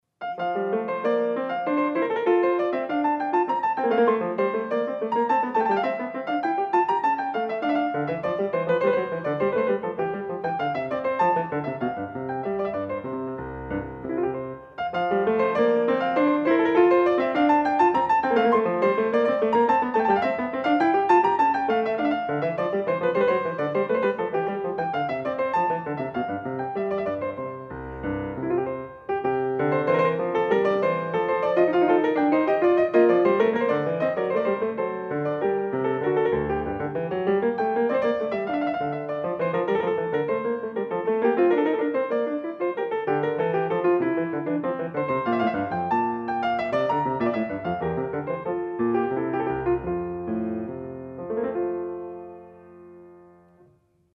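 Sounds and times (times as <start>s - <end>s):
baroque courante dance piece in F major: 0.1s - 54.1s.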